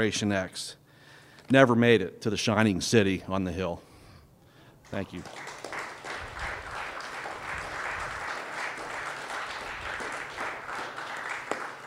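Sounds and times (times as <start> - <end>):
speech: 0.0 - 0.8, 1.5 - 3.9, 4.9 - 5.6
audience applause for open mic participants: 5.0 - 11.8.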